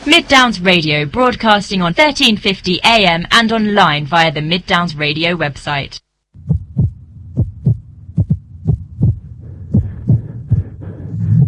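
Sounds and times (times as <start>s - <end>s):
speech: 0.0s - 6.0s
irregular heartbeat: 6.4s - 11.4s.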